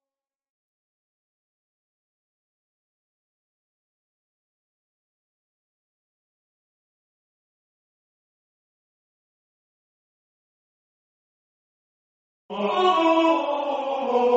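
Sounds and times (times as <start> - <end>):
tenor singing: 12.5 - 14.3.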